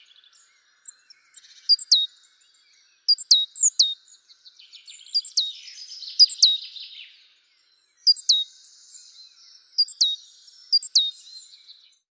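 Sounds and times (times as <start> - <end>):
great tit chirping: 0.7 - 2.1, 3.1 - 4.0, 4.8 - 6.7, 8.0 - 11.6.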